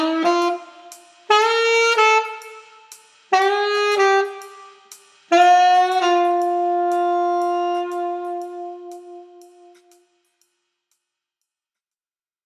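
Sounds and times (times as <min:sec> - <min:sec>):
alto jazz: 0:00.0 - 0:10.0.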